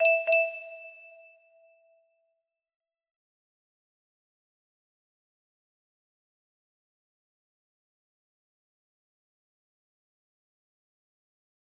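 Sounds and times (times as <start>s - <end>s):
music box: 0.0s - 1.5s.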